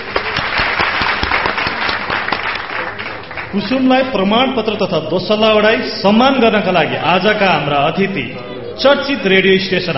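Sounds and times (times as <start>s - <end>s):
sharp individual claps: 0.0s - 3.5s
audience applause at a Nepali honouring ceremony: 0.0s - 3.8s
speech: 3.5s - 9.9s.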